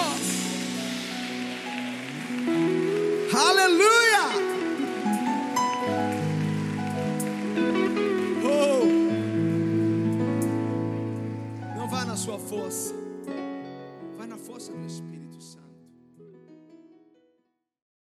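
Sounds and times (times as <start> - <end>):
audience applause: 0.0 - 12.5
sustained musical tones: 0.0 - 13.2
speech: 3.3 - 4.4, 14.4 - 15.6.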